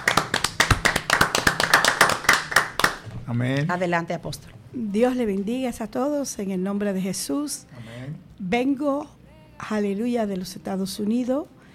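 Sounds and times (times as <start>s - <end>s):
audience applause: 0.0s - 3.0s
speech: 3.3s - 11.6s.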